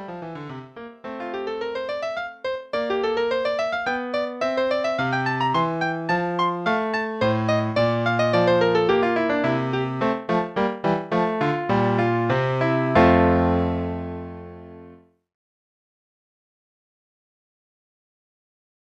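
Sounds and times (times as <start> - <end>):
piano courante play-along: 0.0 - 15.0.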